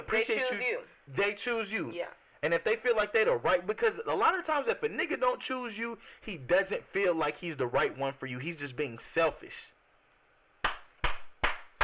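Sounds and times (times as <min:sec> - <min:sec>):
speech: 0:00.0 - 0:09.8
applause sound effect: 0:10.6 - 0:11.8.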